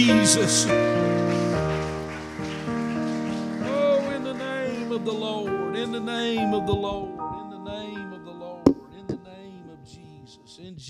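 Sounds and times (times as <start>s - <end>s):
speech: 0.0s - 1.1s, 5.0s - 7.8s
audience clapping: 0.0s - 6.9s
loud sustained organ-like chords: 0.0s - 10.8s.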